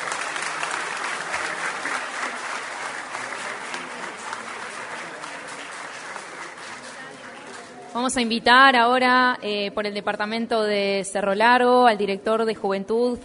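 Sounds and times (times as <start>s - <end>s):
audience applause: 0.0s - 7.8s
speech: 8.0s - 13.2s.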